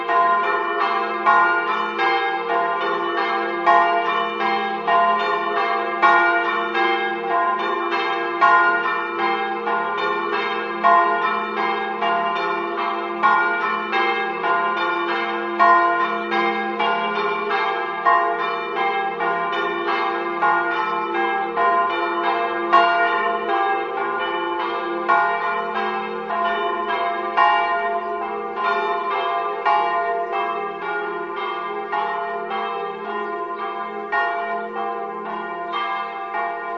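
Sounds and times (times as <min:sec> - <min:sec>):
bells ringing in Cordovado: 0:00.0 - 0:36.7.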